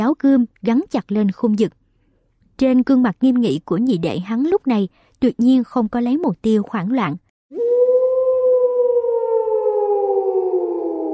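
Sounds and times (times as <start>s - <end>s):
speech: 0.1s - 1.8s, 2.6s - 7.7s
long wolf howl: 7.5s - 11.1s.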